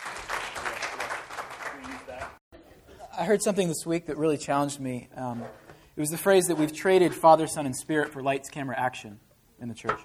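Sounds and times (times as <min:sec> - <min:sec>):
audience clapping: 0:00.0 - 0:02.4
speech: 0:03.2 - 0:10.0.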